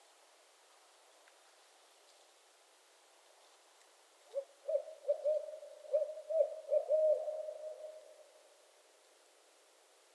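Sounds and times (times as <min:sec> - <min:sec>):
barred owl hooting: 0:04.3 - 0:08.2.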